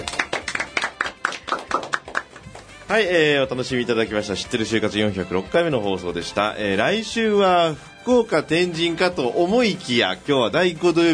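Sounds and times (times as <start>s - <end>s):
small group clapping: 0.0s - 2.8s
speech: 2.9s - 11.1s.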